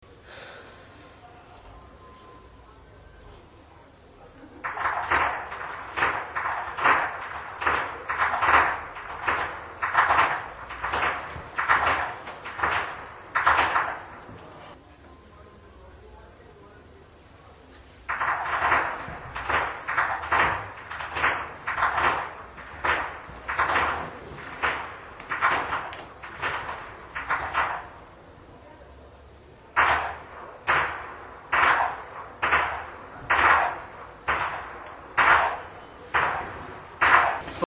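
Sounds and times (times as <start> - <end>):
whip cracking in Flachgau: 4.6 - 14.3, 18.1 - 28.0, 29.8 - 37.5.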